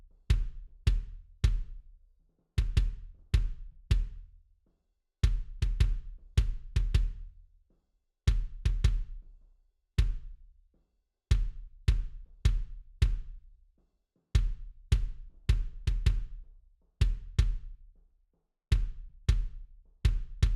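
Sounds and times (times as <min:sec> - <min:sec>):
kick drum: 0:00.0 - 0:02.0, 0:02.6 - 0:04.4, 0:05.2 - 0:07.4, 0:08.3 - 0:09.4, 0:10.0 - 0:10.5, 0:11.3 - 0:13.6, 0:14.3 - 0:18.0, 0:18.7 - 0:20.5.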